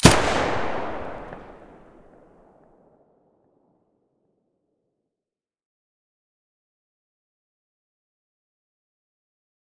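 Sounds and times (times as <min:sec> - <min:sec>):
SA80 rifle muzzle shot: 0:00.0 - 0:02.7.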